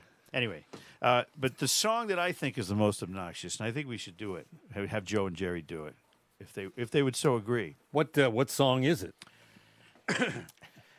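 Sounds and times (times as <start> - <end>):
speech: 0.3 - 9.3, 10.1 - 10.6
throat clearing: 10.1 - 10.7.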